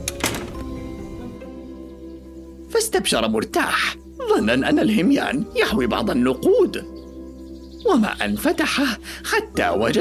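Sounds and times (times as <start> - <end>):
door shutting: 0.0 - 0.9
speech: 2.7 - 7.0, 7.8 - 9.9.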